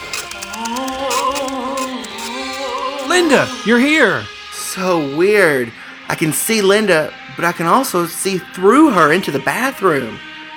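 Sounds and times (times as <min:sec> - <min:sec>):
dot matrix printer printing: 0:00.0 - 0:03.6
speech: 0:03.2 - 0:10.3.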